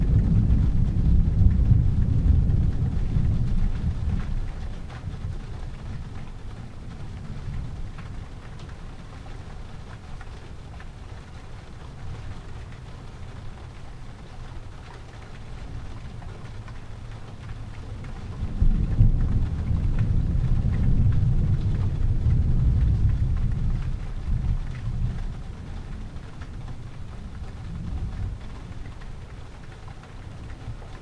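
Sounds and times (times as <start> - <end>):
thunder: 0.0 - 8.3, 18.0 - 29.2.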